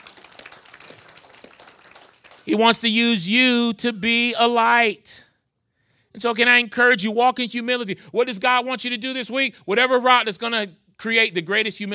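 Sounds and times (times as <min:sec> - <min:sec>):
audience clapping: 0:00.0 - 0:02.9
speech: 0:02.4 - 0:05.3, 0:06.2 - 0:11.9.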